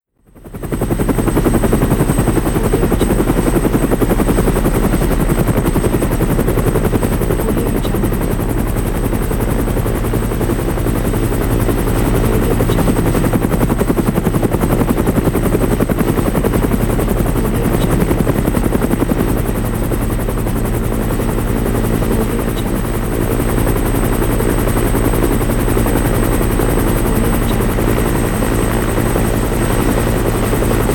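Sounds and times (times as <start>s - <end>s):
helicopter: 0.0s - 30.9s.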